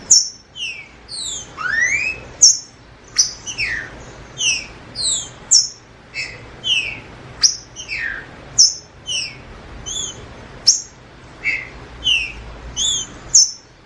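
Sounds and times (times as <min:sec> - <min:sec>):
green-winged saltator whistling song: 0:00.0 - 0:13.8.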